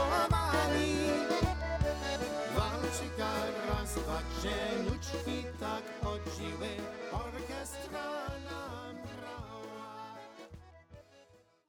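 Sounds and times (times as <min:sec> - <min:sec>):
waltz music: 0:00.0 - 0:08.7.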